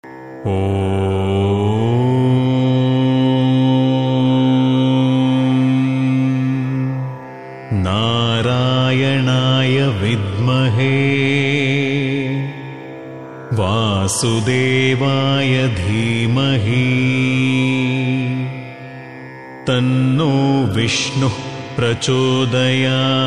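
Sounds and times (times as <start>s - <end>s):
man chanting mantra: 0.4s - 18.9s, 19.6s - 23.2s.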